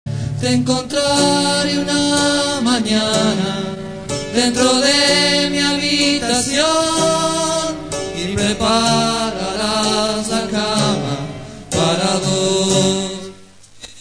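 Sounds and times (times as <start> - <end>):
song chorus: 0.1 - 13.9.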